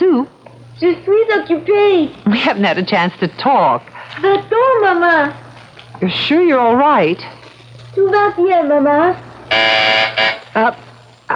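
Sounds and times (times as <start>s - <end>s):
speech: 0.8s - 5.4s, 6.0s - 7.4s, 8.0s - 11.3s
downstairs phone buzzer: 9.4s - 10.8s
brief tonal bursts: 9.5s - 10.5s.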